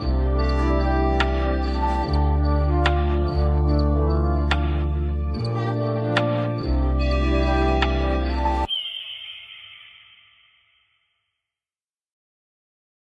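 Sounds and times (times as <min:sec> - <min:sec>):
instrumental music: 0:00.0 - 0:09.0.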